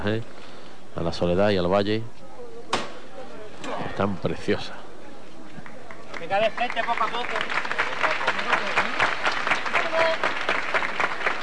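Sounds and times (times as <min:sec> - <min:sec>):
speech: 0:00.0 - 0:02.2, 0:03.9 - 0:04.8, 0:06.2 - 0:07.8
audience applauding: 0:05.6 - 0:11.4.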